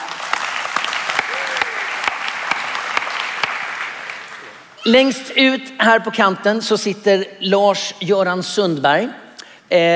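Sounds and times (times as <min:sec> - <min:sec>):
audience applause: 0:00.0 - 0:04.7
speech: 0:04.8 - 0:09.9.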